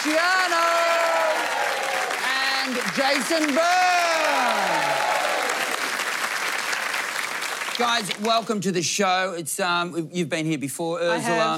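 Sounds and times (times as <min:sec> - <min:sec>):
audience applause welcoming guests onto a show: 0:00.0 - 0:08.6
speech: 0:02.9 - 0:04.7, 0:07.8 - 0:11.5.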